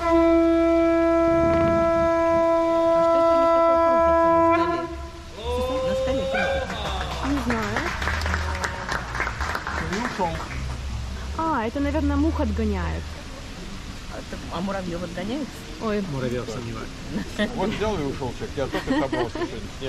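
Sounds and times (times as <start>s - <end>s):
conch shell being blown: 0.0s - 6.7s
crowd chatter: 3.9s - 19.8s
laughter: 5.4s - 9.2s, 17.1s - 19.8s
people clapping: 5.4s - 11.5s
speech: 12.4s - 13.2s, 14.6s - 19.8s.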